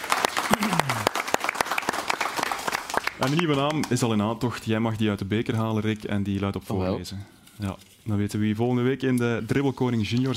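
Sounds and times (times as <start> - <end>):
crowd audience applause: 0.0 - 4.0
speech: 3.2 - 10.3.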